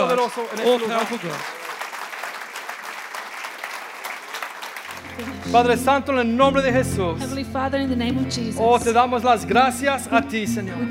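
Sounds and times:
audience applauding: 0.0 - 6.3
speech: 0.1 - 1.6, 5.2 - 10.9.

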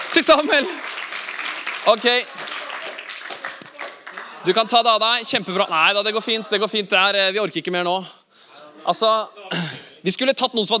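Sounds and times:
audience applause: 0.0 - 6.0
speech: 0.2 - 1.0, 1.8 - 2.4, 4.4 - 8.2, 8.8 - 10.7.

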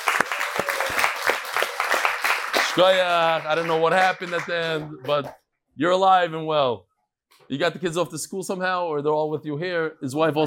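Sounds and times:
audience applause: 0.0 - 5.3
speech: 2.8 - 10.4.

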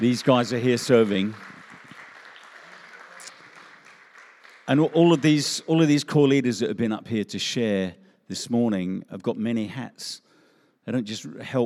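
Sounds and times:
speech: 0.0 - 1.5, 4.7 - 10.3, 10.9 - 11.6
audience round of applause: 0.0 - 5.9.

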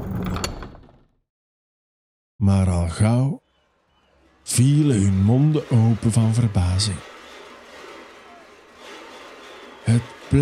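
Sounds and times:
speech: 2.4 - 3.4, 4.5 - 7.1, 9.9 - 10.4
heavy palace gates being pushed open: 3.4 - 10.4.

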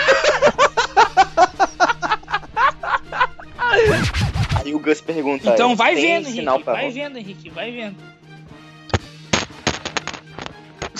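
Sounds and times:
laughter: 0.0 - 4.2
speech: 5.1 - 8.1
microphone dropped, thudding and clattering: 8.9 - 10.9.

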